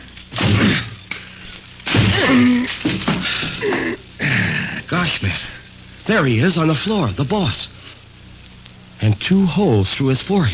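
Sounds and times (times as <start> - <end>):
door being broken down with chair: 0.3 - 1.0, 1.8 - 3.6
speech: 5.2 - 7.8, 9.0 - 10.5.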